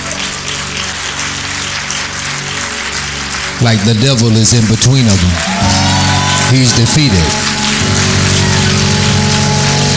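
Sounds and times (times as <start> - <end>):
audience clapping hands: 0.0 - 9.9
speech: 3.6 - 8.1.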